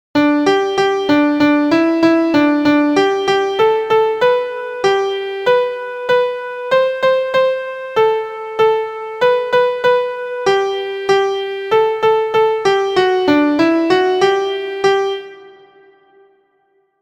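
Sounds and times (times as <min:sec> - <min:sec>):
MIDI music: 0:00.2 - 0:16.3.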